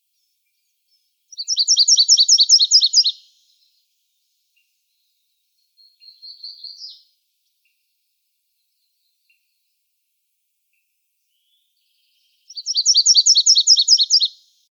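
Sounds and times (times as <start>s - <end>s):
Virginia's warbler singing: 0.0s - 7.2s, 11.3s - 14.7s.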